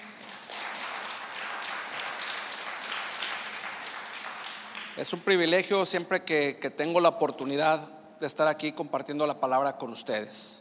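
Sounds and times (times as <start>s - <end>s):
audience applause: 0.0s - 6.1s
speech: 5.0s - 10.5s.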